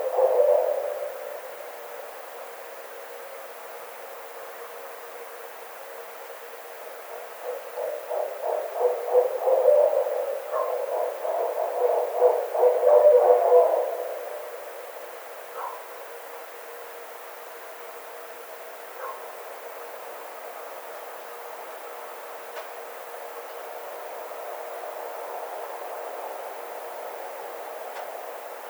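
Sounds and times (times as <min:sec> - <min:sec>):
Barred owl hooting: 0:00.0 - 0:01.8, 0:07.1 - 0:15.0.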